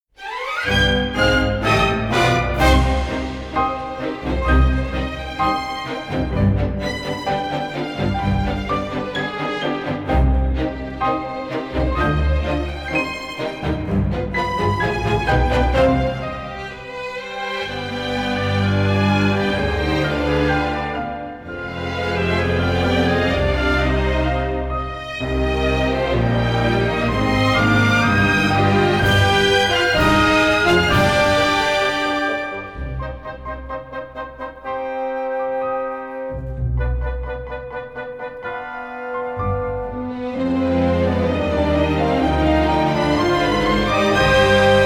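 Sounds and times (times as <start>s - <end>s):
instrumental aria: 0.2s - 44.8s.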